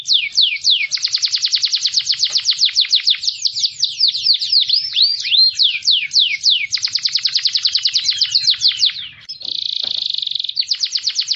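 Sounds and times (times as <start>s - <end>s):
canary singing rattling trills and swooping whistles: 0.0s - 11.3s.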